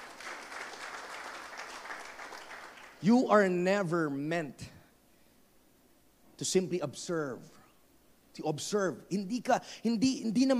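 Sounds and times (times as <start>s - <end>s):
congregation clapping during a church service: 0.0s - 3.0s
speech: 3.0s - 4.7s, 6.4s - 7.6s, 8.4s - 10.5s.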